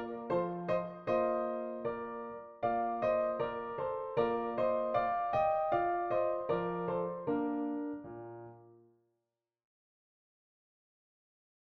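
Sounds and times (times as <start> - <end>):
dance music on a PianoTeq Bechstein piano: 0.0 - 8.6.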